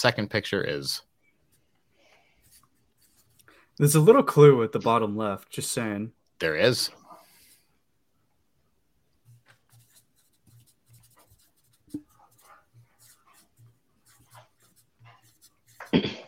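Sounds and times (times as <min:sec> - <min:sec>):
speech: 0:00.0 - 0:01.1, 0:03.8 - 0:07.0
quiz participants' pens scratching on paper: 0:09.2 - 0:15.9.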